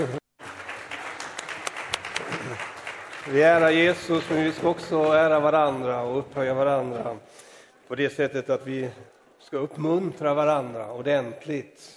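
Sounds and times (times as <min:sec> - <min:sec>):
speech: 0:00.0 - 0:00.2, 0:03.2 - 0:11.9
warm applause from audience: 0:00.0 - 0:06.1.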